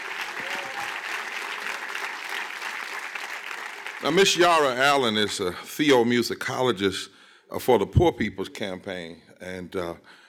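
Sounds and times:
audience applause, hand clapping: 0:00.0 - 0:04.7
speech: 0:04.0 - 0:10.2.

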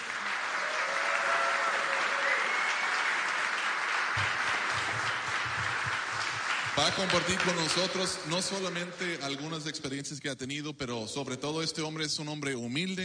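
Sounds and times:
audience applause: 0:00.0 - 0:09.4
whistles and cheers: 0:00.1 - 0:04.8
speech: 0:06.8 - 0:13.0.

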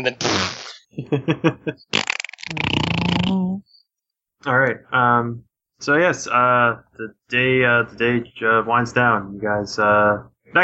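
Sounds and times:
speech: 0:00.0 - 0:03.7, 0:04.4 - 0:10.6
person imitating a motorcycle engine: 0:02.5 - 0:03.6.

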